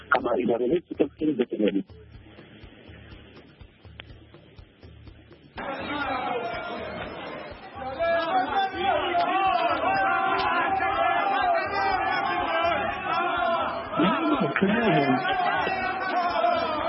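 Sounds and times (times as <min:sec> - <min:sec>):
speech: 0:00.2 - 0:02.2, 0:14.5 - 0:15.8
crowd of Chadema supporters chattering outside a courtroom: 0:05.6 - 0:16.8.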